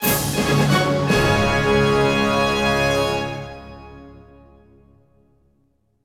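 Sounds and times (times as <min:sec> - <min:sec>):
combat victory jingle: 0:00.0 - 0:04.0.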